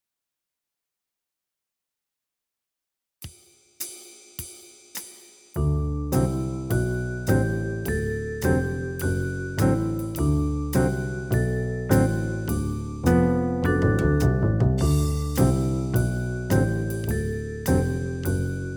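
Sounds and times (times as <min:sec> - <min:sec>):
D and A major pentascales: 0:05.6 - 0:18.7.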